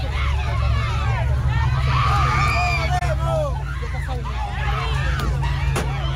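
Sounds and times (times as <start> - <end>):
crowd shouting and crying out: 0.0 - 6.1.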